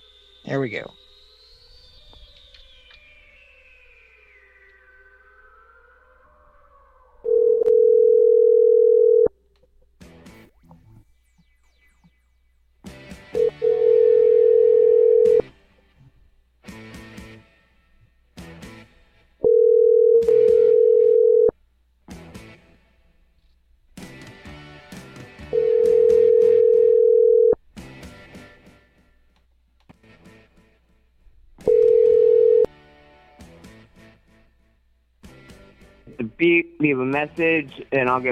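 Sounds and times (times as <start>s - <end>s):
speech: 0.4s - 1.0s, 36.4s - 38.2s
telephone tone while dialing a call: 7.2s - 9.4s, 13.3s - 15.5s, 19.4s - 21.6s, 25.5s - 27.6s, 31.6s - 32.7s.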